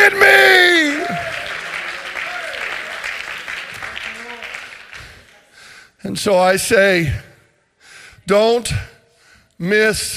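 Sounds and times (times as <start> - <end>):
audience clapping: 0.0 - 5.8
speech: 6.2 - 7.3, 8.3 - 8.9, 9.6 - 10.1.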